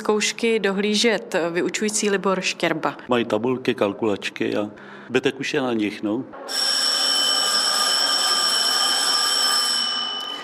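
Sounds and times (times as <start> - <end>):
speech: 0.0 - 6.9
school bell ringing: 6.4 - 10.4.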